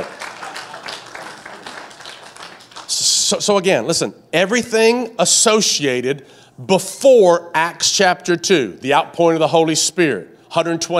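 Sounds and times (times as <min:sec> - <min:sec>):
hand claps: 0:00.0 - 0:03.0
speech: 0:03.3 - 0:10.9.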